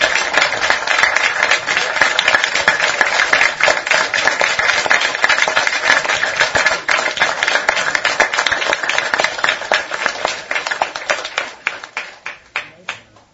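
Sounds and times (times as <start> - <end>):
audience applause in a standing ovation: 0.0 - 13.1.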